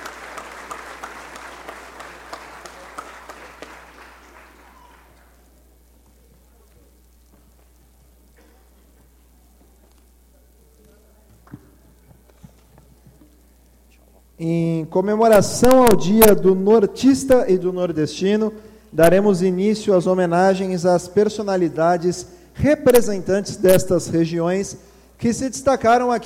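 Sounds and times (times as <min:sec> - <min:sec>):
audience applause: 0:00.0 - 0:05.4
speech: 0:14.4 - 0:26.2.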